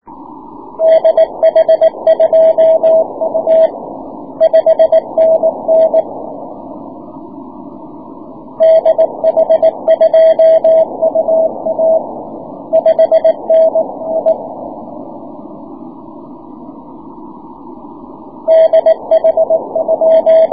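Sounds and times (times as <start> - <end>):
6m CW morse code signal: 0.8 - 6.2, 8.6 - 14.8, 18.4 - 20.5.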